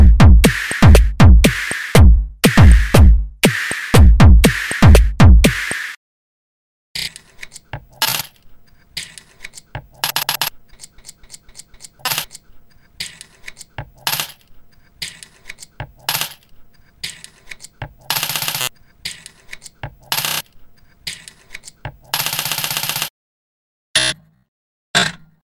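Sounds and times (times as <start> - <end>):
drum hits: 0.0 - 5.9.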